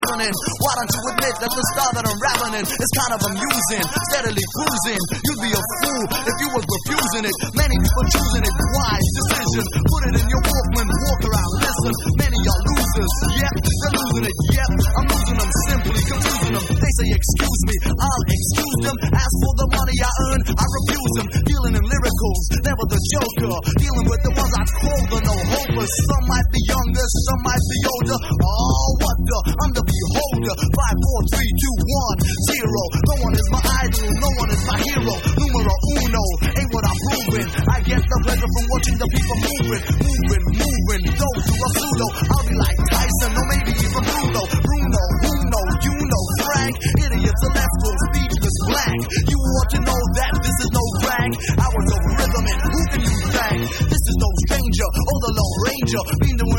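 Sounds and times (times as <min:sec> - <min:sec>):
vocals: 0:00.0 - 0:56.5.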